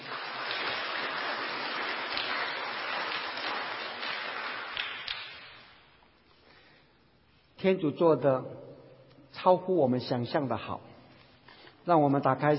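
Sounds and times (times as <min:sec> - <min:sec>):
audience applauding: 0:00.0 - 0:05.7
speech: 0:07.6 - 0:08.7, 0:09.4 - 0:10.9, 0:11.9 - 0:12.5.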